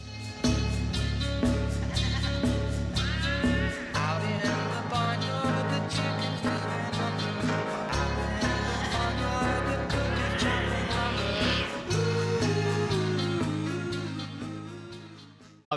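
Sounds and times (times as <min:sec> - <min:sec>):
steady musical backing: 0:00.0 - 0:14.8
vocalists imitating barnyard animal noises: 0:01.8 - 0:03.4, 0:07.0 - 0:13.4.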